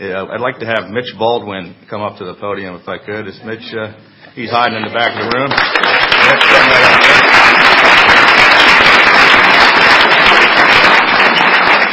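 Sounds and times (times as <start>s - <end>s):
speech: 0.0s - 7.6s
crowd applauding: 4.6s - 11.9s.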